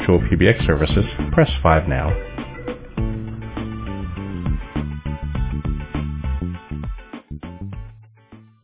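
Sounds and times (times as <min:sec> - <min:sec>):
ring music: 0:00.0 - 0:06.8.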